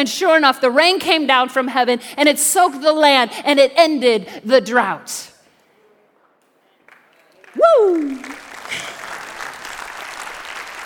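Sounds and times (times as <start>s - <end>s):
speech: 0.0s - 5.3s, 7.6s - 8.4s
scattered clapping from a few people: 6.8s - 10.8s.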